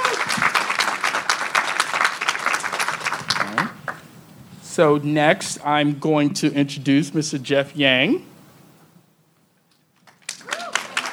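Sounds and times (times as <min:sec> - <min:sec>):
audience applause: 0:00.0 - 0:04.1, 0:10.0 - 0:11.1
speech: 0:04.8 - 0:08.3.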